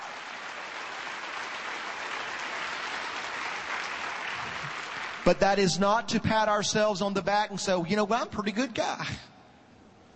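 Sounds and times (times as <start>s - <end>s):
applause: 0.0s - 5.4s
speech: 5.3s - 9.3s.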